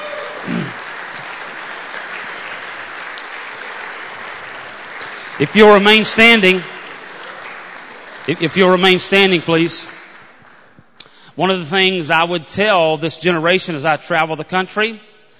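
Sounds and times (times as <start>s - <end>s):
audience applause: 0.0s - 10.8s
speech: 5.4s - 6.8s, 8.3s - 10.0s, 11.4s - 15.1s.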